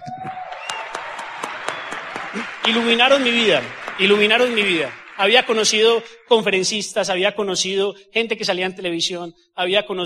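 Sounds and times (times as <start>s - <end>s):
audience applause: 0.0s - 6.4s
speech: 2.3s - 10.0s.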